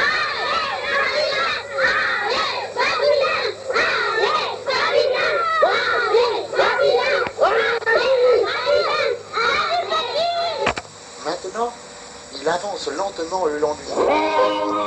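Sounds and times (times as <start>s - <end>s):
crowd of children cheering and shouting: 0.0s - 10.7s
speech: 13.0s - 14.7s.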